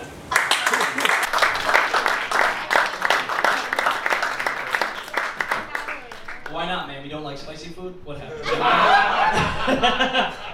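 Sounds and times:
audience applause: 0:00.3 - 0:06.6
speech: 0:07.6 - 0:08.7, 0:09.7 - 0:10.4
laughter: 0:08.3 - 0:10.5.

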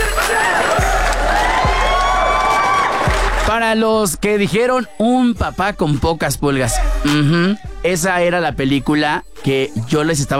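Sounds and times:
studio audience applause: 0:00.0 - 0:03.6
studio audience cheers and whoops: 0:00.0 - 0:03.6
speech: 0:03.5 - 0:10.3.

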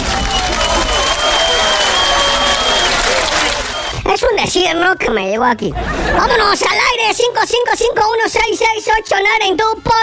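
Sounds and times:
applause: 0:00.0 - 0:04.0
speech: 0:04.5 - 0:10.0.

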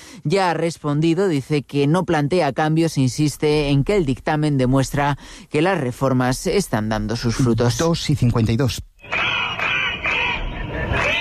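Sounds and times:
speech: 0:00.1 - 0:09.4
crowd of protesting teachers in Catalonia shouting and chanting: 0:09.0 - 0:11.1.

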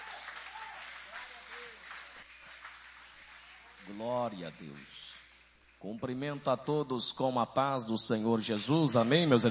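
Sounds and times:
audience applause: 0:00.0 - 0:04.9, 0:08.6 - 0:09.4
speech: 0:03.9 - 0:05.2, 0:05.8 - 0:09.4.

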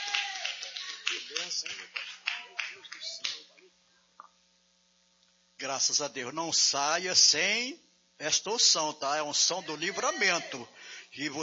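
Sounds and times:
crowd applauding: 0:00.0 - 0:03.5
speech: 0:01.2 - 0:04.4, 0:05.6 - 0:11.4.

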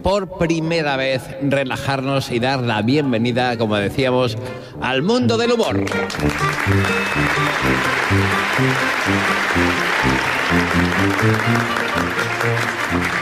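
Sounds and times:
speech: 0:00.0 - 0:13.1
audience applause: 0:05.8 - 0:13.1.

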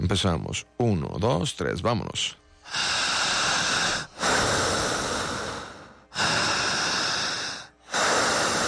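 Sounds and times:
speech: 0:00.0 - 0:03.1
person breathing loudly and exaggeratedly: 0:02.6 - 0:08.6.

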